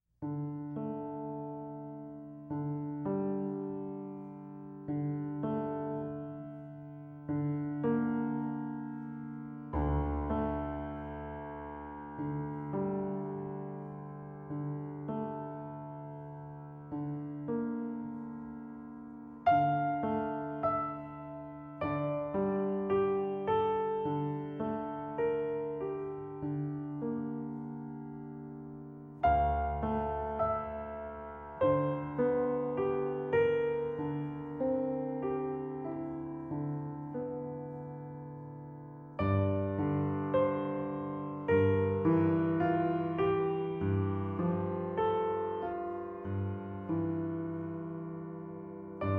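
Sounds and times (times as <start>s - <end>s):
nocturne in D minor: 0.2s - 49.1s.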